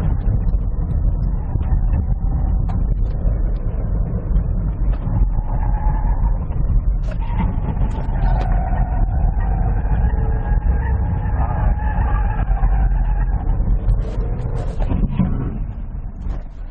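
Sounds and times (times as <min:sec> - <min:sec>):
car driving fast on small race track: 0:00.0 - 0:16.6.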